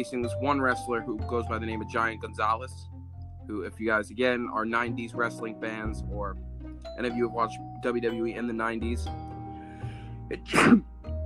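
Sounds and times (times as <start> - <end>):
speech: 0.0 - 9.3, 10.3 - 10.9
person sneezing: 10.4 - 10.8.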